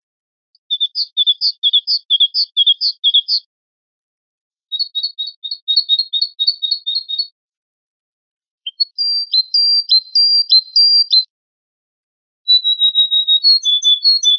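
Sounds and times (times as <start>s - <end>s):
great tit singing in spring: 0.5s - 3.5s, 4.7s - 7.4s, 8.7s - 11.3s, 12.5s - 14.3s.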